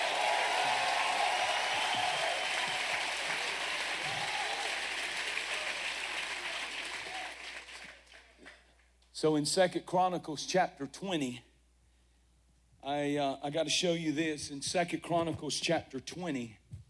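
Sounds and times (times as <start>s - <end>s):
audience hand clapping: 0.0s - 8.8s
speech: 9.2s - 11.5s, 12.9s - 16.6s.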